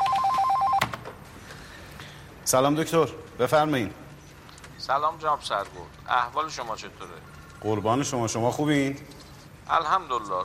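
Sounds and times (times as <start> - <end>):
telephone ringing with a call from the central prison warden's office: 0.0 - 0.9
speech: 2.5 - 4.0, 4.8 - 10.4.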